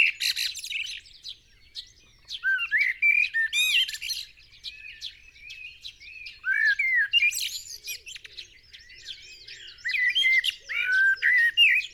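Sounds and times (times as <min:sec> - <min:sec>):
Turdus merula common blackbird singing warbled phrases with squeaky twittered endings: 0:00.0 - 0:11.9.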